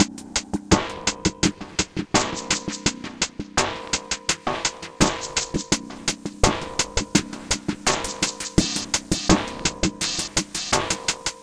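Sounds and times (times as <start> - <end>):
alien tech beat pitched down one octave: 0.0 - 11.4.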